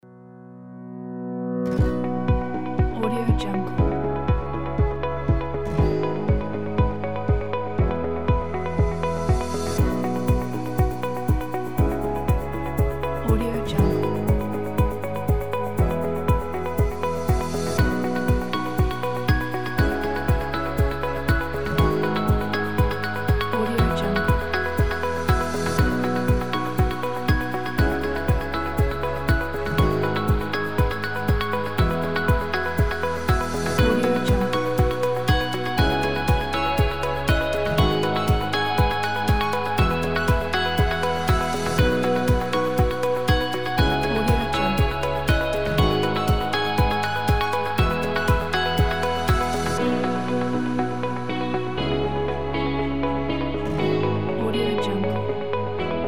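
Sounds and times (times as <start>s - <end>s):
positive ambient music: 0.0s - 56.0s.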